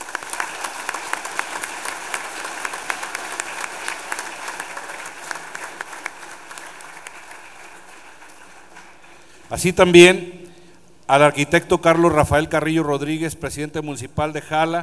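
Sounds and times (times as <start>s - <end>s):
crowd applauding: 0.0s - 9.4s
speech: 9.5s - 10.4s, 11.1s - 14.8s.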